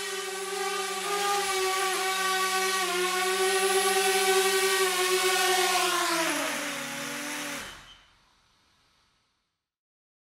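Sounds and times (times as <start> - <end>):
camera drone flying: 0.0 - 8.0.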